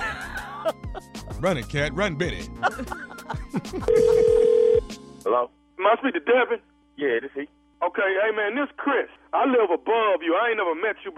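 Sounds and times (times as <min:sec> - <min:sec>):
laughter: 0:00.0 - 0:01.7, 0:02.4 - 0:04.6
speech: 0:01.4 - 0:04.4, 0:05.2 - 0:11.1
telephone dialing tones: 0:03.9 - 0:04.9.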